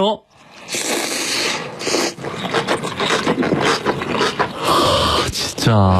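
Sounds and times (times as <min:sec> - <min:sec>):
crunchy chewing of radish kimchi: 0:00.4 - 0:05.8.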